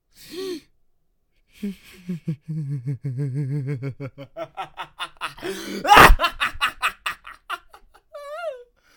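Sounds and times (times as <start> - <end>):
crazed laughter: 1.9 - 8.3.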